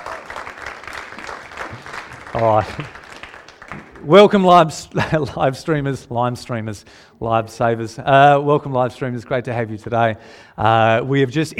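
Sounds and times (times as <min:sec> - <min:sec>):
crowd applause: 0:00.0 - 0:04.2
speech: 0:02.3 - 0:03.0, 0:04.0 - 0:11.5.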